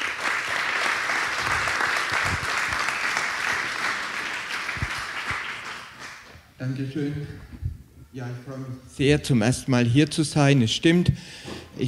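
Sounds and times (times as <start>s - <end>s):
audience applause: 0.0s - 6.3s
speech: 6.6s - 7.6s, 8.2s - 11.8s.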